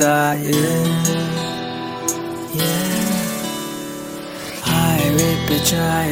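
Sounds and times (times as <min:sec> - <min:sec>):
Bollywood theme song ringtone: 0:00.1 - 0:06.0.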